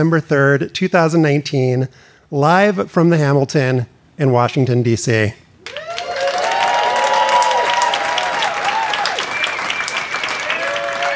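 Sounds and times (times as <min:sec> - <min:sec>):
speech: 0:00.0 - 0:05.4
audience applause: 0:05.6 - 0:11.1.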